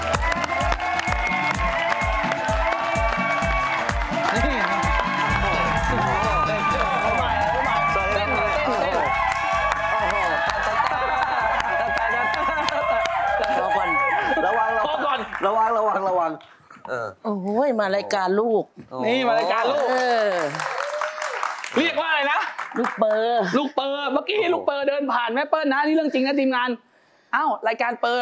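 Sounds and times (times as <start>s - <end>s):
audience applause and cheering: 0.0s - 16.0s, 19.5s - 23.2s
speech: 17.8s - 20.7s, 21.8s - 28.1s.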